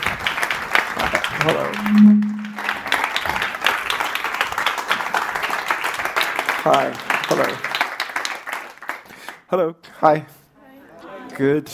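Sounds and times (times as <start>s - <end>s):
audience applause welcoming a poet at a literary event: 0.0s - 1.7s, 3.0s - 9.4s
speech: 1.4s - 2.4s, 6.6s - 7.7s, 9.5s - 10.4s, 11.4s - 11.7s
short steady tone: 1.5s - 2.8s.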